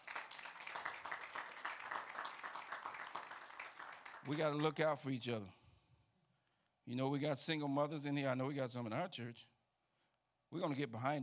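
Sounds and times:
crowd applauding: 0.0s - 4.8s
speech: 4.2s - 5.6s, 6.9s - 9.5s, 10.5s - 11.2s.

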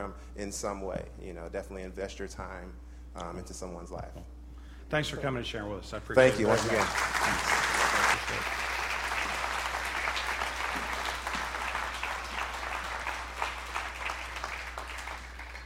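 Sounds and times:
speech: 0.0s - 7.7s, 8.3s - 8.6s
audience clapping: 6.2s - 15.6s.

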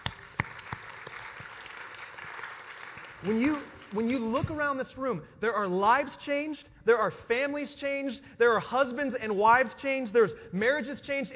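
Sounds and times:
room full of people applauding: 0.0s - 4.3s
speech: 3.2s - 11.3s.

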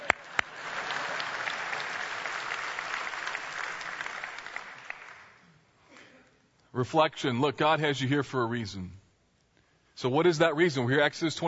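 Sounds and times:
audience applause: 0.0s - 5.4s
speech: 6.8s - 9.0s, 10.0s - 11.4s.

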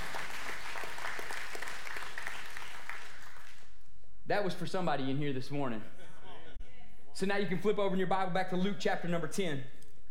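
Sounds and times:
audience applause: 0.0s - 3.7s
speech: 4.3s - 6.0s, 7.2s - 9.8s.

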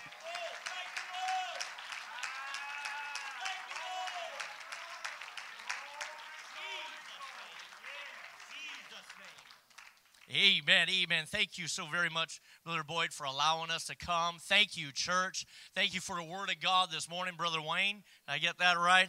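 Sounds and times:
church congregation clapping their hands: 0.0s - 10.8s
speech: 10.3s - 19.0s.

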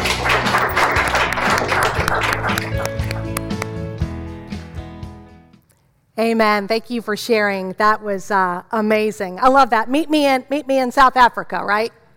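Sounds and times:
audience clapping: 0.0s - 3.9s
speech: 6.2s - 12.0s.

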